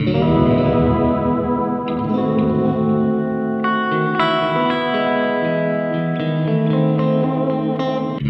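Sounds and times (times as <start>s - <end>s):
guitar: 0.0s - 8.2s.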